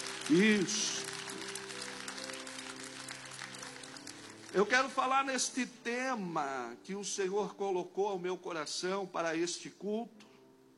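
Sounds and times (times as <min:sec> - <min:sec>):
audience applause: 0:00.0 - 0:04.8
speech: 0:00.3 - 0:01.1, 0:04.5 - 0:10.2.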